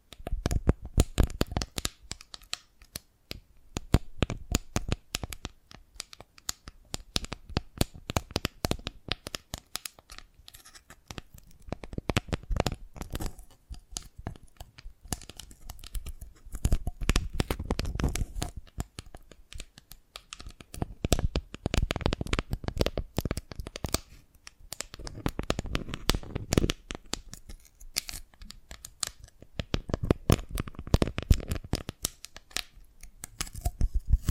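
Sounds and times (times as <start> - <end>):
Dalgona candy tapped and cracked: 0.1 - 34.2.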